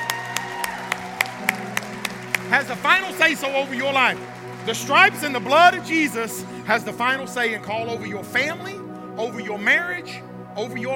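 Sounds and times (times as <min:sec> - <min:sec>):
audience clapping hands: 0:00.0 - 0:07.2
speech: 0:02.5 - 0:10.9.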